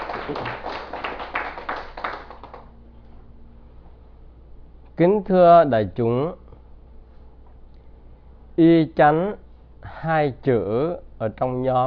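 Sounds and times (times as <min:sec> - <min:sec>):
audience clapping at a Vietnamese Buddhist dharma talk: 0:00.0 - 0:02.7
speech: 0:00.3 - 0:00.7, 0:05.0 - 0:06.4, 0:08.6 - 0:11.8.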